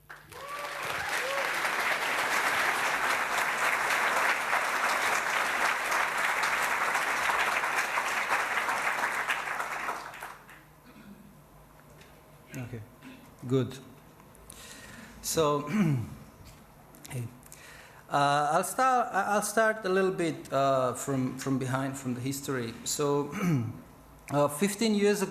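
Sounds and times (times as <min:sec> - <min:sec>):
audience applause: 0:00.0 - 0:10.6
speech: 0:13.5 - 0:13.9, 0:15.3 - 0:16.2, 0:17.2 - 0:17.4, 0:18.1 - 0:25.2.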